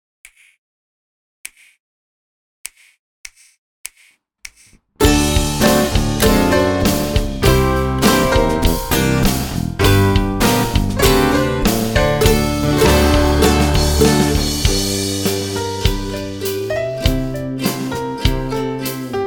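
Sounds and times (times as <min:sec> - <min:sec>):
blues music: 0:05.0 - 0:19.2.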